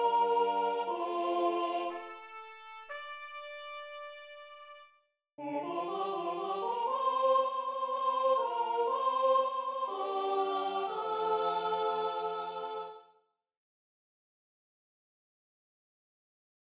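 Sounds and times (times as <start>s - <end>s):
alto voice singing: 0.0s - 2.2s, 5.4s - 13.1s.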